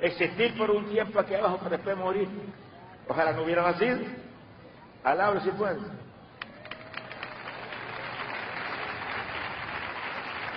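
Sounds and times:
speech: 0.0s - 4.3s, 5.0s - 6.1s
audience applauding: 6.4s - 10.5s.

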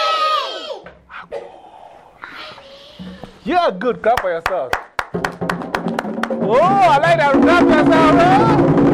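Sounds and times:
crowd shouting call-and-response chant: 0.0s - 0.9s
speech: 3.4s - 5.3s, 6.4s - 8.8s.

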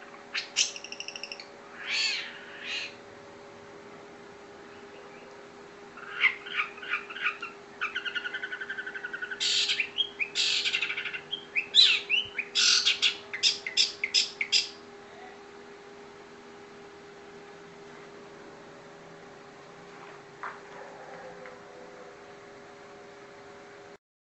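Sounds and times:
Oriental magpie-robin singing: 0.3s - 3.0s, 6.0s - 14.8s.

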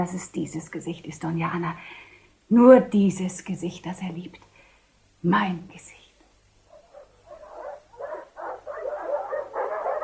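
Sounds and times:
speech: 0.0s - 4.5s, 5.2s - 6.0s
faint low hum: 0.0s - 10.0s
several dogs barking at night: 6.3s - 10.0s.

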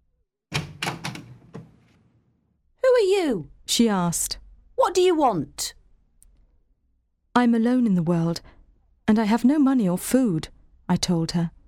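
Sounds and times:
door opened by a servant: 0.5s - 2.0s
speech: 3.0s - 5.8s, 7.4s - 11.6s.

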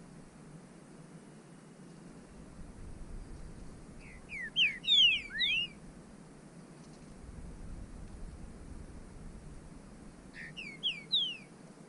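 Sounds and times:
bird whistling calls: 4.0s - 5.8s, 10.4s - 11.5s.

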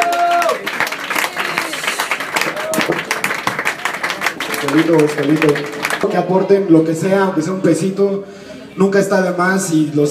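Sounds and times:
gathered crowd applauding in Chiapas after a letter is read: 0.0s - 6.6s
speech: 4.7s - 10.0s.

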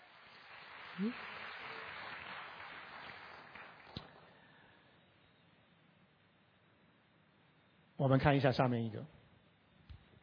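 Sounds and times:
audience applauding: 0.0s - 4.6s
speech: 1.0s - 1.3s, 8.0s - 9.2s.

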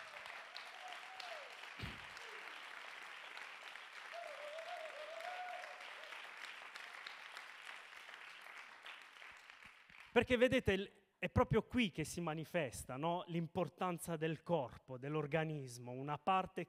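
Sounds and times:
audience applause: 0.0s - 10.1s
speech: 10.2s - 16.6s.

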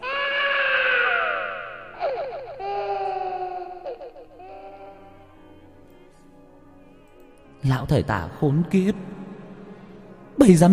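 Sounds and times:
eerie ghostly wailing cries: 0.0s - 5.6s
quavering sobs: 0.0s - 5.6s
speech: 7.6s - 9.2s, 10.4s - 10.7s.

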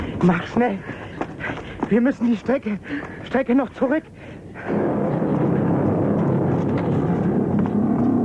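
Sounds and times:
speech: 0.2s - 4.9s
rocket launch roar: 4.6s - 8.1s.

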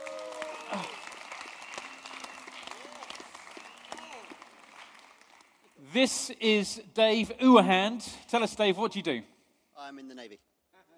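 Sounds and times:
audience applause: 0.0s - 5.9s
speech: 0.7s - 1.0s, 5.9s - 9.3s.

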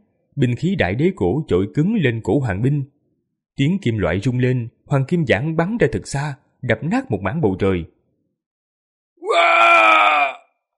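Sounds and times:
speech: 0.4s - 3.0s, 3.6s - 8.0s
man screaming in agony as he is struck and thrown back: 9.2s - 10.5s.

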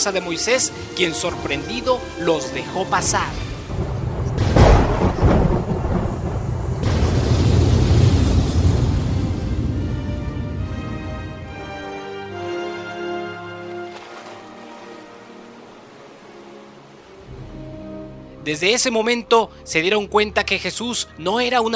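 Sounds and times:
speech: 0.0s - 3.9s, 18.5s - 21.7s
thunder rumble: 2.9s - 11.5s
lightning crack: 3.0s - 10.8s.

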